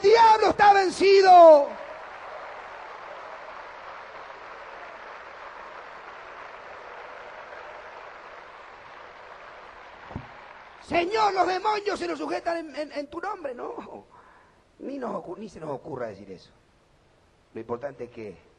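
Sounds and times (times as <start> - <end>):
audience applause: 0.0 - 11.8
speech: 10.9 - 14.2, 14.8 - 16.6, 17.5 - 18.5.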